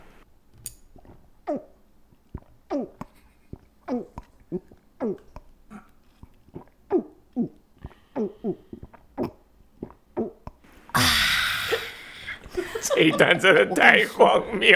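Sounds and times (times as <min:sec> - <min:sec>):
loud gulping while drinking water: 0:01.0 - 0:12.2
speech: 0:01.5 - 0:01.7, 0:13.0 - 0:14.7
laughter: 0:11.7 - 0:14.7.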